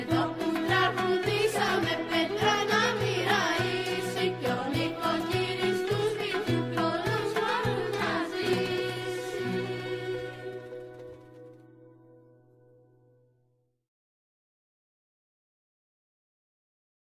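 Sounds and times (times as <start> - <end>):
Peloponnese Christmas carols: 0.0 - 11.6.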